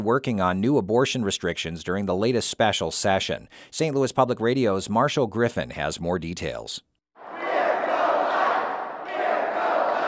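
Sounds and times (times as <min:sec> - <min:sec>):
speech: 0:00.0 - 0:06.9
crowd of abortion opponents cheering the governor at the Missouri Capitol: 0:07.2 - 0:10.0.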